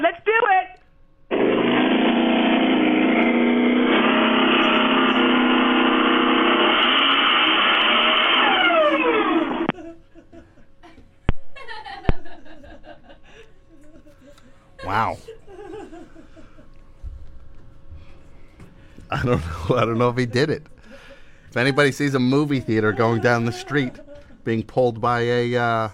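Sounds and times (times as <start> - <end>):
Volkswagen Beetle engine droning: 1.3 - 9.7
laughter: 9.3 - 16.8, 19.1 - 21.5, 22.3 - 24.6
speech: 19.2 - 20.8, 21.5 - 25.9.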